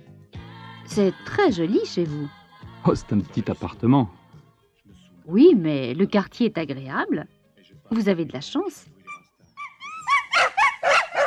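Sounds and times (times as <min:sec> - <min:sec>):
speech: 0:00.9 - 0:04.2, 0:05.3 - 0:08.9
two dogs yelping in the bedroom of a small apartment: 0:09.0 - 0:11.2.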